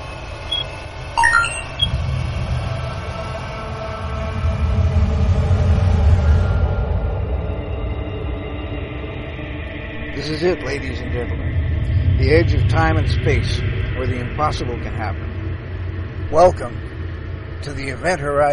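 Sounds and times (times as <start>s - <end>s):
black hole magnetic resonance rendered as a deep rumbling drone: 0.0s - 18.5s
high metallic squeals: 0.4s - 1.9s
speech: 10.4s - 15.3s, 16.3s - 16.9s, 17.6s - 18.5s.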